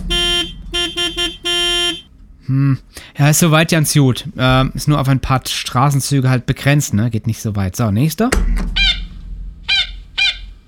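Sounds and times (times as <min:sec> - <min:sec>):
warning siren being tested: 0:00.0 - 0:02.1, 0:09.7 - 0:10.6
speech: 0:02.5 - 0:09.0.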